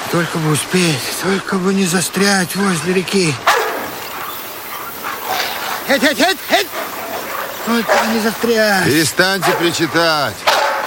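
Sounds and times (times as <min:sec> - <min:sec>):
speech: 0:00.1 - 0:03.5, 0:05.9 - 0:06.9, 0:07.6 - 0:10.5
sled dogs barking: 0:03.4 - 0:10.8.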